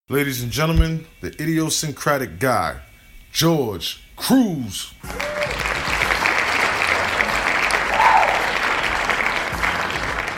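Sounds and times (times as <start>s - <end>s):
speech: 0.1s - 5.6s
whoop of cheering: 5.1s - 5.9s, 7.8s - 8.8s
crowd applause: 5.1s - 10.3s.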